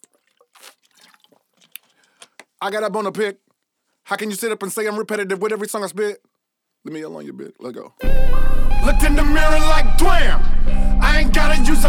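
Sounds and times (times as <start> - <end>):
person drinking water: 0.0 - 2.4
speech: 2.6 - 3.4, 4.1 - 11.8.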